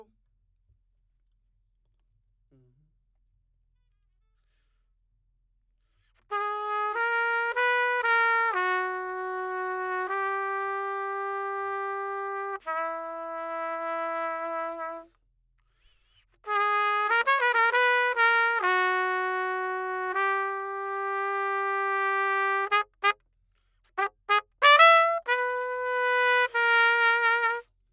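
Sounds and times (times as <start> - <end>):
trumpet: 6.2 - 15.1, 16.4 - 23.2, 24.0 - 27.9.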